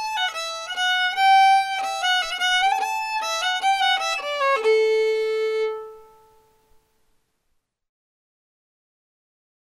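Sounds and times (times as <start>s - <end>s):
fiddle: 0.0s - 6.8s.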